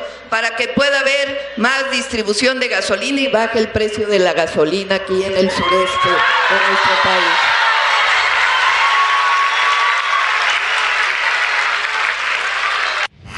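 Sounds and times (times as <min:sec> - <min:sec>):
speech: 0:00.3 - 0:07.6
crowd applause: 0:06.1 - 0:13.1.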